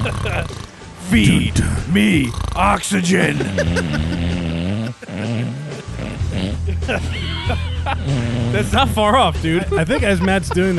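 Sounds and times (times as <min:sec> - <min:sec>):
laughter: 0:00.0 - 0:00.5, 0:02.8 - 0:10.7
person imitating loud snoring: 0:00.0 - 0:01.0, 0:01.8 - 0:06.8, 0:08.0 - 0:08.8
speech: 0:00.4 - 0:04.4, 0:06.9 - 0:10.7.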